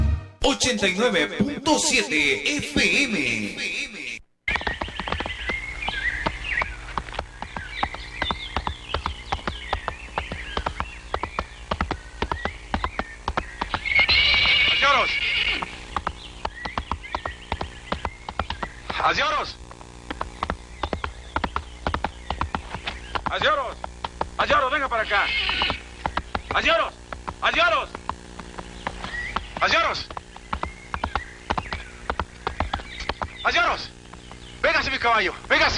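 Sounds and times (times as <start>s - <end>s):
speech: 0.4s - 4.0s, 25.0s - 25.5s, 26.6s - 28.0s, 29.6s - 30.1s, 33.5s - 33.9s, 34.8s - 35.7s
hooves clip-clopping: 1.3s - 3.3s, 4.5s - 35.7s
horse neighing: 13.8s - 15.8s, 25.0s - 25.8s.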